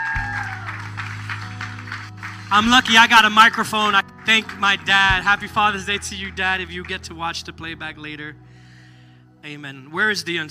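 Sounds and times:
audience applause for fathers: 0.0 - 5.5
speech: 2.5 - 8.4, 9.4 - 10.5.

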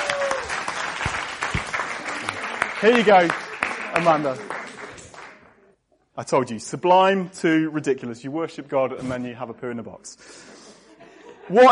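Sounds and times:
audience applause: 0.0 - 5.5
speech: 2.8 - 3.4, 4.0 - 4.5, 6.2 - 10.6, 11.5 - 11.7.

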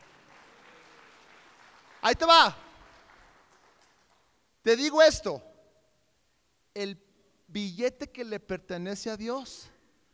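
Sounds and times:
audience applause: 0.0 - 4.3
speech: 2.0 - 2.6, 4.6 - 5.5, 6.8 - 9.7.

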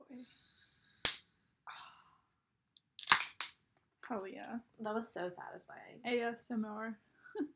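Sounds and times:
drink can opening: 2.9 - 3.5
speech: 4.1 - 7.5.

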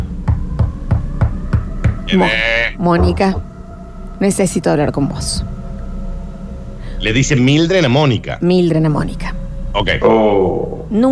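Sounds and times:
knocking on a bedroom door: 0.0 - 2.1, 3.0 - 3.5
speech: 2.1 - 3.5, 4.2 - 5.5, 7.0 - 11.1.

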